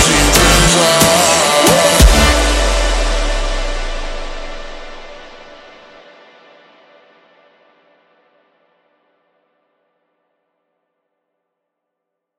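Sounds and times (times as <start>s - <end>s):
super slowed funk music: 0.0s - 5.8s.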